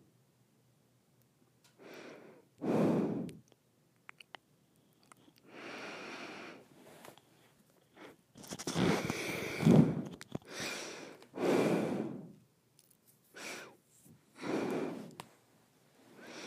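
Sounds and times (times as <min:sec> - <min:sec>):
nose breathing: 0:01.8 - 0:03.5, 0:04.8 - 0:07.3, 0:07.9 - 0:12.4, 0:13.3 - 0:15.2, 0:16.2 - 0:16.4.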